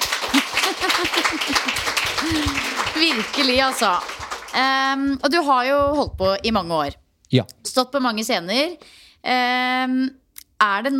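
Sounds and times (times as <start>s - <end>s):
audience applause: 0.0s - 5.0s
speech: 3.0s - 10.9s.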